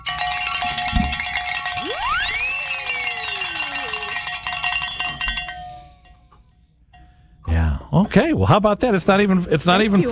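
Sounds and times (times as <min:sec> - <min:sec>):
bells ringing: 0:00.0 - 0:07.4
speech: 0:08.2 - 0:10.1.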